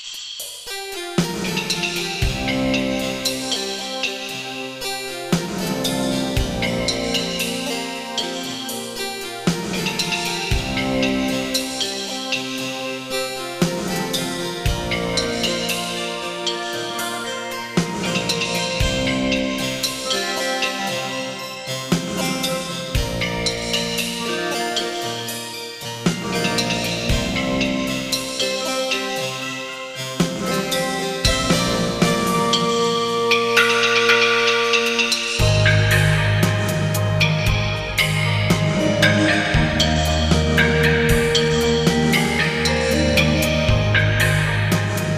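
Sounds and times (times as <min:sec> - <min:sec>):
Korg M1R synthesizer: 0:00.6 - 0:45.1.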